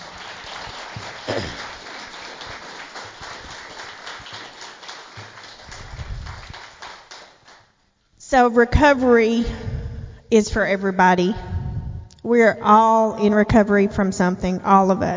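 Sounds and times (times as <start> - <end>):
audience applause: 0.0 - 7.7
speech: 8.3 - 9.7, 10.3 - 11.5, 12.2 - 15.1.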